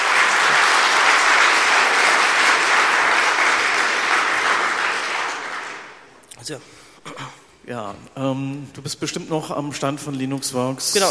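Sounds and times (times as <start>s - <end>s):
audience applause: 0.0s - 6.1s
speech: 6.5s - 11.1s.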